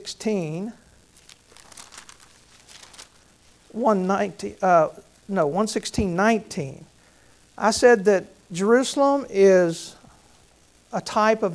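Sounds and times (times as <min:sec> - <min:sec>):
speech: 0:00.1 - 0:00.8, 0:03.7 - 0:06.9, 0:07.6 - 0:10.0, 0:10.9 - 0:11.5
Bible pages flipping: 0:01.1 - 0:03.6.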